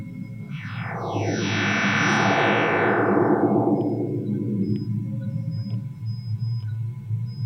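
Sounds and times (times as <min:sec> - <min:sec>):
constant low rumble: 0:00.0 - 0:07.3
sonified solar radio bursts from cleaned data with only solar emissions: 0:00.4 - 0:06.2.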